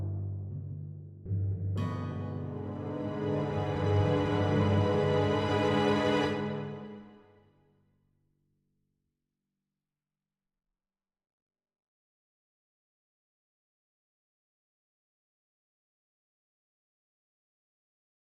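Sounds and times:
cinematic music: 1.8 - 7.2.

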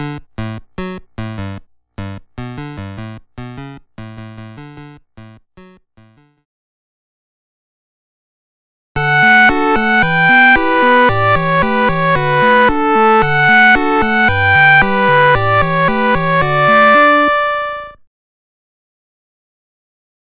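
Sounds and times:
main theme music for puzzle completion: 9.0 - 18.0.

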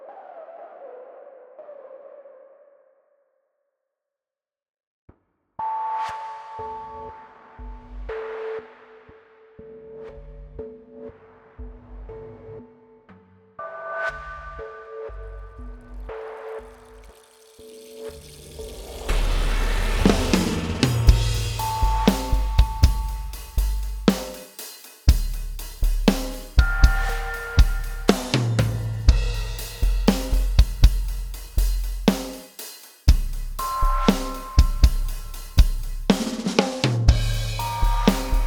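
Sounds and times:
drums: 15.5 - 38.4.

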